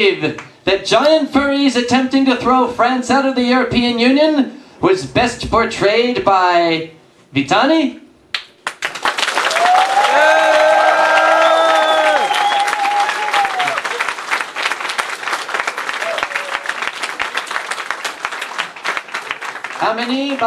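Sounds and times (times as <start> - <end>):
speech: 0.0 - 8.0, 19.9 - 20.4
applause: 8.4 - 20.4.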